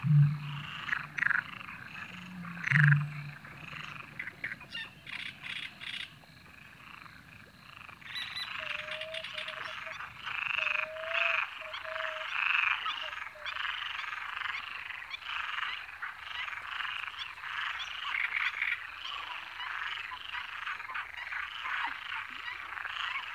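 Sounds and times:
great marsh warblers singing: 0:00.0 - 0:05.1
coots calling: 0:00.0 - 0:05.8
frogs: 0:00.0 - 0:23.3.

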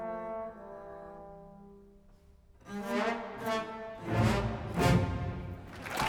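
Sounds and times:
orchestra playing a vivo movement: 0:02.7 - 0:05.9.

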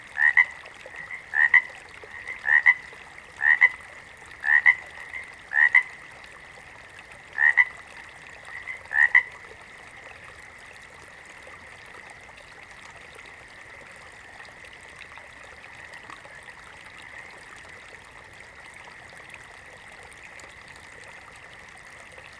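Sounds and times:
water frog double croaks: 0:00.2 - 0:03.8, 0:04.4 - 0:06.0, 0:07.4 - 0:07.8, 0:08.5 - 0:09.4.

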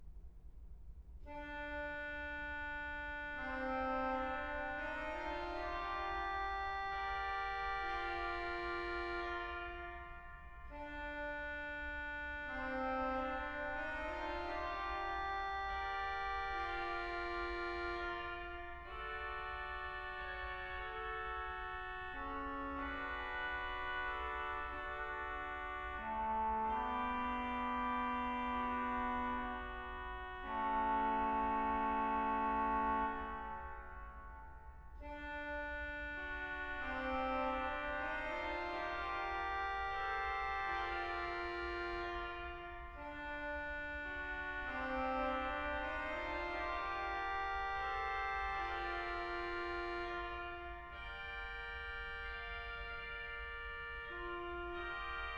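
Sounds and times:
organ: 0:01.3 - 0:55.3.

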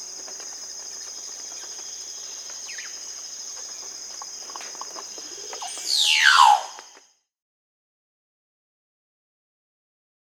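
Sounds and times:
Casqued Oropendola Psarocolius oseryi calling in Peru: 0:01.0 - 0:07.0.

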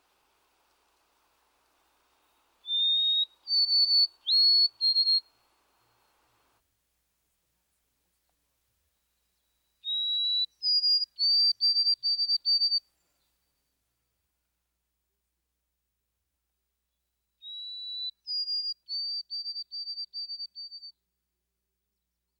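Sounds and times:
White-throated Sparrow whistled song: 0:00.0 - 0:06.3, 0:09.2 - 0:13.6, 0:17.4 - 0:21.0.

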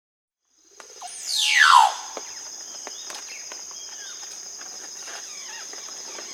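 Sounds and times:
casqued oropendola loud slurred downward glide in South America: 0:01.0 - 0:02.3.

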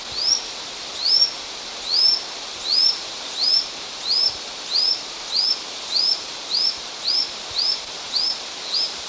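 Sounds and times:
lanceolated monklet Micromonacha lanceolata singing in eastern lowlands of South America: 0:00.1 - 0:08.9.

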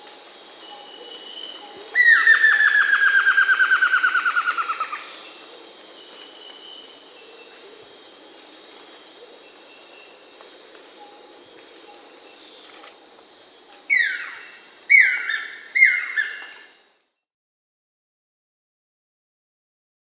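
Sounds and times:
Buff-throated Woodcreeper Xiphorhynchus guttatus calling in Peru: 0:01.5 - 0:05.5, 0:13.9 - 0:16.7.

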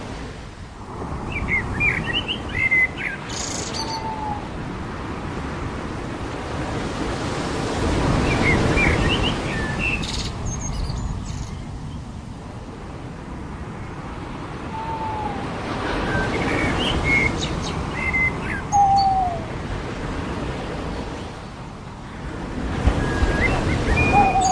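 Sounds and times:
ocean waves on the beach: 0:00.0 - 0:24.5
birds on the beach: 0:01.3 - 0:04.5, 0:08.2 - 0:12.0, 0:14.7 - 0:19.5, 0:22.9 - 0:24.5.

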